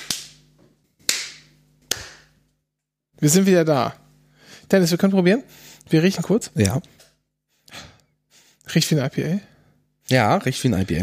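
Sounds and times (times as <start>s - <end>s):
hand clap to sync recording tracks: 0.0s - 0.4s, 1.0s - 2.4s
speech: 3.2s - 4.0s, 4.7s - 7.0s, 8.7s - 9.5s, 10.1s - 11.0s.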